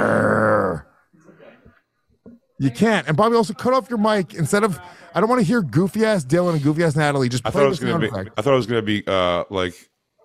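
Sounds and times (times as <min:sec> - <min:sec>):
person imitating a dog growl: 0:00.0 - 0:00.9
speech: 0:02.6 - 0:09.9.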